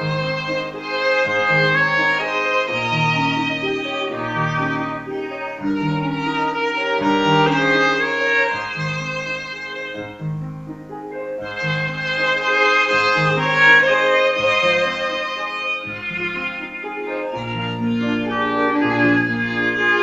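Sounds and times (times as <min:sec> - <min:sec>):
piano trio playing: 0:00.0 - 0:20.0.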